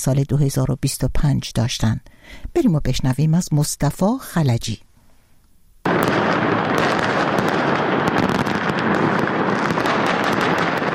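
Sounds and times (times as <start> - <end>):
speech: 0.0 - 4.9
fireworks in Umayyad Square Damascus at New Year 2025: 5.8 - 10.9.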